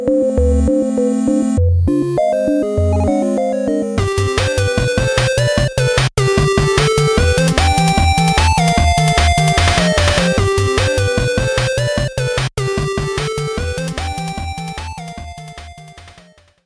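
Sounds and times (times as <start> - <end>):
8-bit sounds: 0.4 - 16.4.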